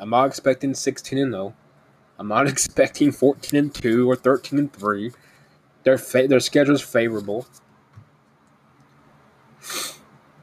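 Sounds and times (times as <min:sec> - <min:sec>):
speech: 0:00.0 - 0:01.6, 0:02.2 - 0:07.6, 0:09.6 - 0:09.9
quiet hiss: 0:00.0 - 0:10.4
sneeze from someone with allergies: 0:09.6 - 0:10.0.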